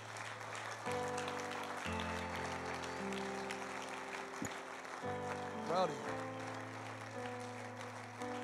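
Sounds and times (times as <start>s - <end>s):
audience applauding: 0.0s - 8.4s
speech: 5.7s - 6.2s.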